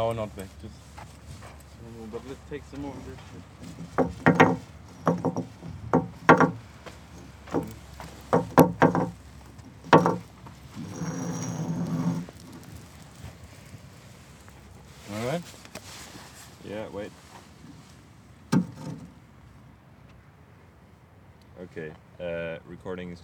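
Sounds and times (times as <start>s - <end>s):
rock scraping: 1.0s - 19.2s.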